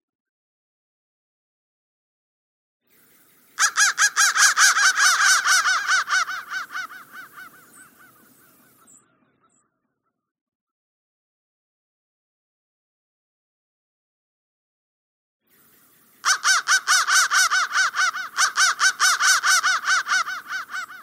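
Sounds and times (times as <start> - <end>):
crow cawing: 3.6 - 9.6, 16.2 - 21.0.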